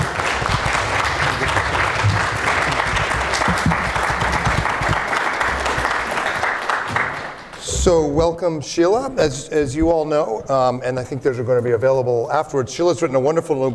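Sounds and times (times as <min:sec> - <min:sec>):
audience applause: 0:00.0 - 0:07.7
speech: 0:07.8 - 0:13.7.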